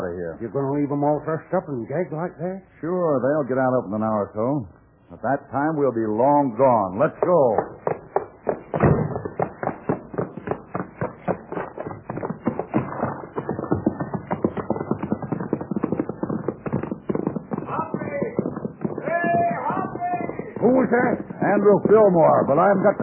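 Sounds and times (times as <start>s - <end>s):
speech: 0.2s - 7.9s, 21.6s - 23.0s
hoofbeats of the horse Topper being ridden: 6.1s - 23.0s.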